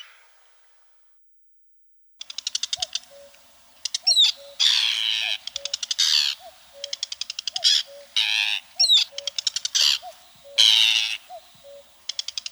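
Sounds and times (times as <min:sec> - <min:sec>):
Arctic tern uttering rasping screeches and rattles: 0:04.0 - 0:11.9.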